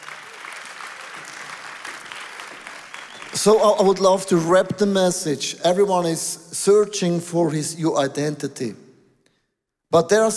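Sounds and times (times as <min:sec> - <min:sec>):
applause: 0:00.0 - 0:04.3
speech: 0:03.3 - 0:08.8, 0:09.9 - 0:10.3.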